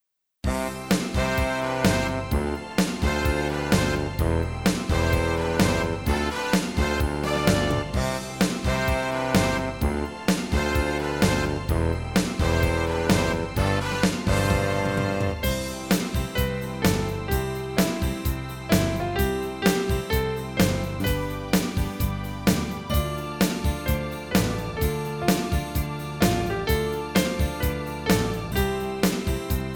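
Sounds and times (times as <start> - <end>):
instrumental music: 0.4 - 29.7.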